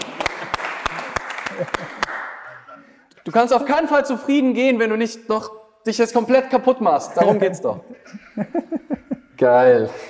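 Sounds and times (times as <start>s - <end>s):
applause: 0.0s - 2.7s
laughter: 0.4s - 2.7s, 7.1s - 10.0s
speech: 1.6s - 2.1s, 3.2s - 10.0s.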